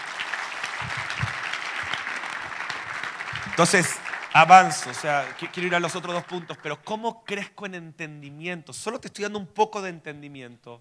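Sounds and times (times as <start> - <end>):
audience applauding: 0.0 - 7.0
speech: 3.6 - 10.7.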